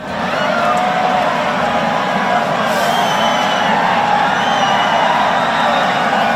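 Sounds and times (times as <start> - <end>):
festival crowd cheering at tomato fight: 0.0 - 6.3
people shouting and whooping: 0.0 - 6.3.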